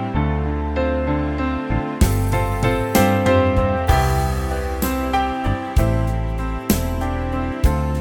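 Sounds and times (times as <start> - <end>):
full instrumental backing track in C major: 0.2 - 7.9.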